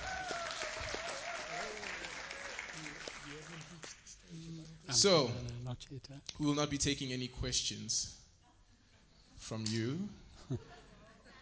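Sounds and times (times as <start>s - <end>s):
audience applause: 0.0s - 4.1s
speech: 4.9s - 8.2s, 9.5s - 10.8s.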